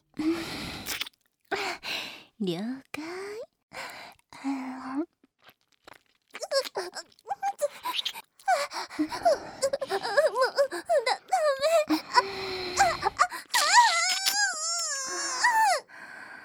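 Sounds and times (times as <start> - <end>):
alternating fellatio ASMR sounds: 0.4 - 1.6, 3.9 - 15.6.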